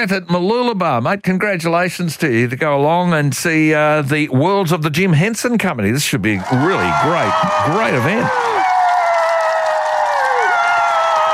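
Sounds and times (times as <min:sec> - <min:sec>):
speech: 0:00.0 - 0:08.6
crowd cheering: 0:06.3 - 0:11.3.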